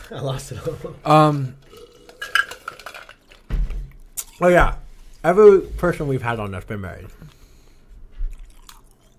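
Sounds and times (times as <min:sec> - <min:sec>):
speech: 0:00.1 - 0:01.9, 0:04.4 - 0:07.4
heavy thump: 0:03.5 - 0:04.0
someone chewing ice: 0:08.3 - 0:09.1.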